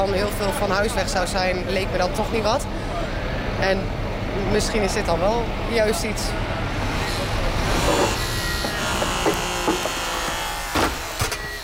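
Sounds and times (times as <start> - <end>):
speech: 0.0 - 6.6
car being demolished: 7.8 - 11.5.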